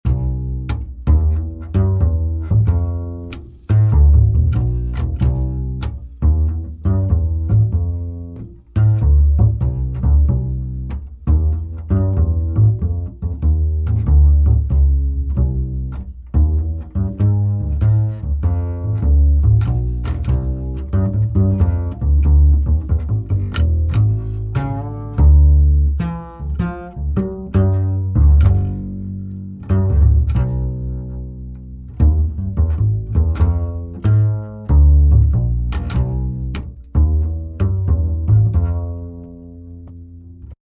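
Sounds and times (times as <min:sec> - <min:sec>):
bass: 0:00.0 - 0:40.6.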